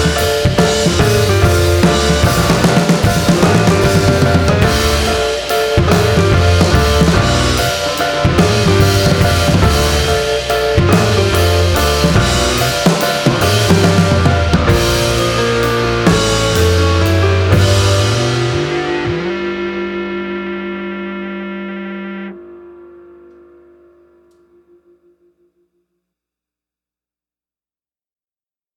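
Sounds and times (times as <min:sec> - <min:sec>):
cinematic instrumental music: 0:00.0 - 0:21.7.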